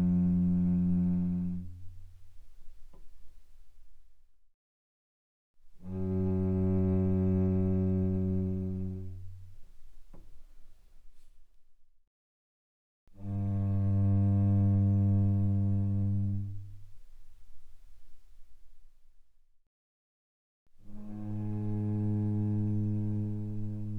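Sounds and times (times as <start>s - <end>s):
cello bowed pianissimo on the C string: 0.0s - 2.2s, 5.8s - 10.4s, 13.2s - 17.1s, 20.8s - 23.9s.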